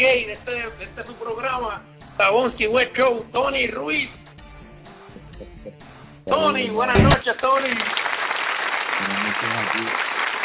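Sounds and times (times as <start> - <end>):
speech: 1.8 - 4.2, 5.4 - 8.2, 9.0 - 10.2
voice rising over applause: 6.3 - 7.2
steady dense applause: 7.2 - 10.4.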